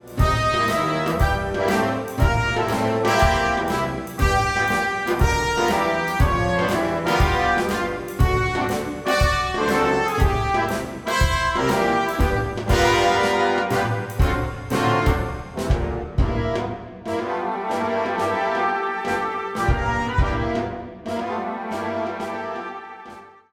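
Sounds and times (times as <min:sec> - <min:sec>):
wind band playing: 0:00.0 - 0:23.5.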